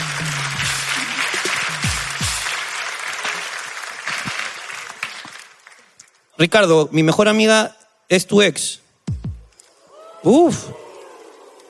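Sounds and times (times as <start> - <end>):
audience applause: 0.0 - 6.0
speech: 6.4 - 8.8, 10.2 - 10.8.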